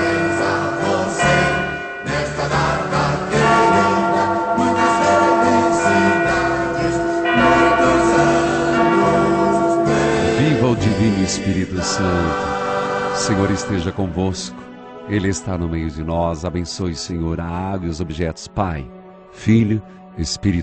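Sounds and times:
church bells ringing: 0.0s - 14.6s
speech: 13.3s - 20.6s.

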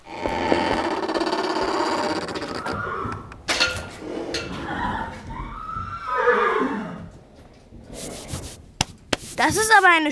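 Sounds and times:
knight's horse in armour neighing in a stable: 0.1s - 7.2s
speech: 9.8s - 10.0s.

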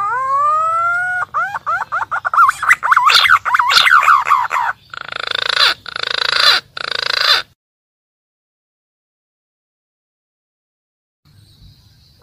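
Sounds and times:
green pigeon calling: 0.0s - 7.6s.

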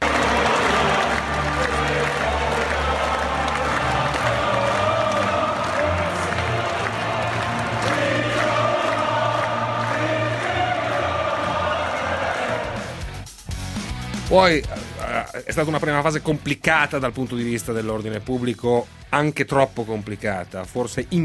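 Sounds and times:
huge crowd of Irish football fans singing a chant: 0.0s - 12.9s
speech: 14.3s - 14.8s, 15.4s - 21.2s.

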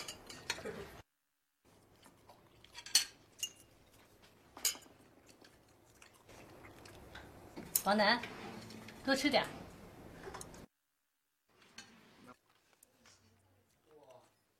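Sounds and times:
glasses clinking in a toast: 0.0s - 0.7s
speech: 7.9s - 8.4s, 9.0s - 9.6s.

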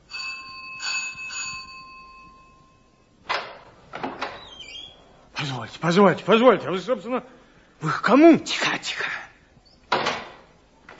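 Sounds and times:
doorbell ringing: 0.0s - 3.1s
speech: 5.4s - 9.2s.

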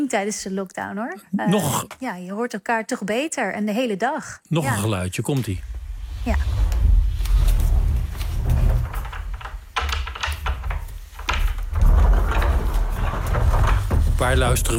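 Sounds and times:
speech: 0.0s - 6.6s, 14.2s - 14.7s
sliding ensuite doors closing: 5.5s - 14.7s.

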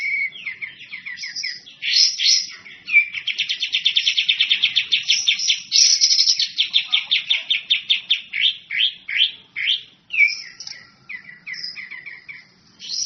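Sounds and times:
bird singing a high rapid chatter: 0.0s - 13.0s.

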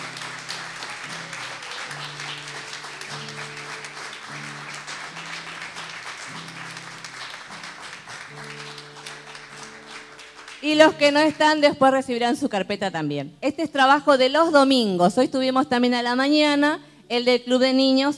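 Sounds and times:
audience clapping for children receiving folders: 0.0s - 11.6s
speech: 10.6s - 18.1s.

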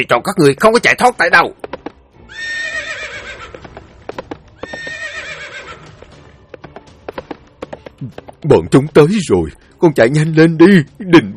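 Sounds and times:
speech: 0.0s - 1.7s, 8.0s - 11.3s
horses galloping: 1.2s - 9.4s
horses neighing: 2.3s - 6.4s.

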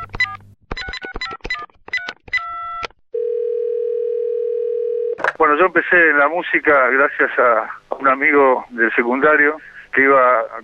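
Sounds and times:
telephone dial tone: 3.2s - 5.2s
speech: 5.5s - 10.6s.

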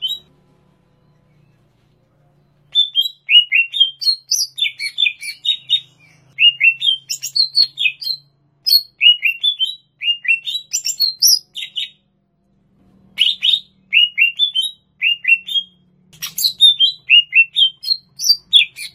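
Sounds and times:
greater green leafbird song in Banyuwangi, Indonesia: 2.6s - 12.0s, 13.2s - 18.9s.

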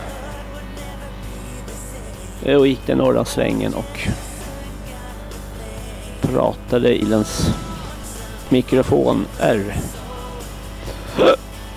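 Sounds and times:
speech: 2.4s - 4.3s, 6.3s - 7.7s, 8.5s - 10.0s, 11.2s - 11.4s
person hiccuping: 11.1s - 11.6s.

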